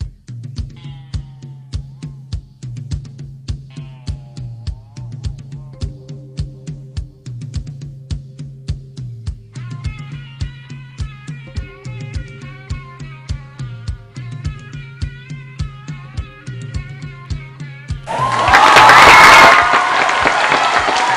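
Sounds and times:
audience applause and cheering: 18.1 - 21.1.

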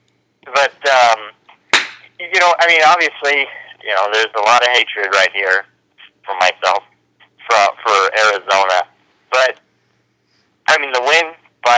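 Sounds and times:
slap sound effect: 1.8 - 2.1
speech: 2.5 - 5.7, 6.3 - 6.9, 7.5 - 9.6, 10.7 - 11.7.

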